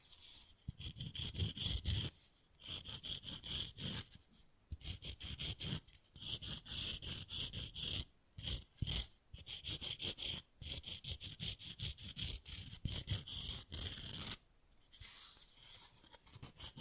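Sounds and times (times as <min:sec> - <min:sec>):
fast rough nail filing: 0:00.7 - 0:04.1, 0:04.8 - 0:14.4, 0:16.3 - 0:16.7.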